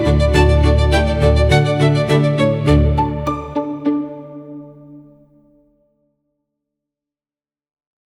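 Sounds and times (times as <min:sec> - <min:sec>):
Romantic chamber orchestra: 0:00.0 - 0:05.2.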